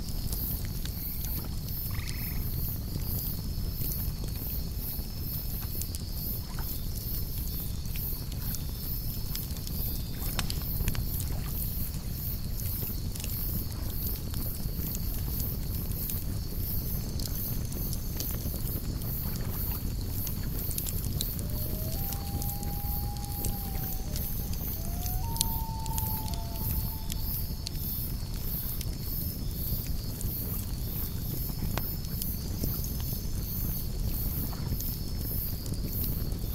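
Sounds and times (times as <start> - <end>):
lakeside campfire crackling: 0.0 - 34.0
relaxing nature night sounds: 0.0 - 36.5.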